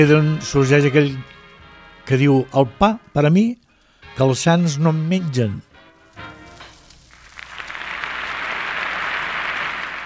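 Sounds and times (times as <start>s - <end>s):
speech: 0.0s - 1.4s, 2.1s - 6.3s
audience applause: 7.1s - 10.0s.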